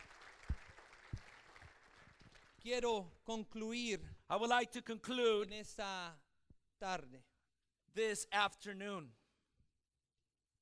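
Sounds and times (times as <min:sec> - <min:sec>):
audience applause: 0:00.0 - 0:02.7
speech: 0:02.6 - 0:06.2, 0:06.8 - 0:07.3, 0:07.9 - 0:09.2.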